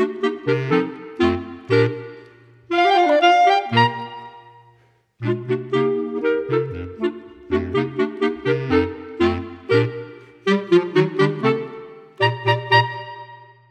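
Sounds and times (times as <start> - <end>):
clarinet quartet playing: 0.0 - 13.5.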